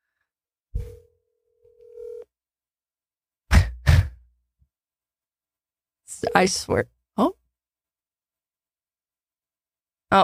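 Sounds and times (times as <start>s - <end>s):
telephone tone as call is dialed: 0.8s - 2.3s
speech: 6.2s - 7.4s.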